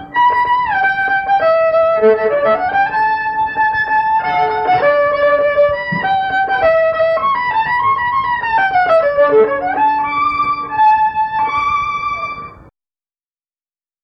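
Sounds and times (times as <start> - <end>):
violin playing a sztajerek folk dance: 0.0 - 12.7.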